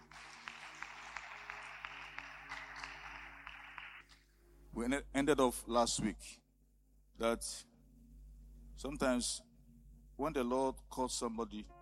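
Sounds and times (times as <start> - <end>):
audience applauding: 0.0 - 4.2
speech: 4.8 - 6.4, 7.2 - 7.7, 8.8 - 9.5, 10.2 - 11.8.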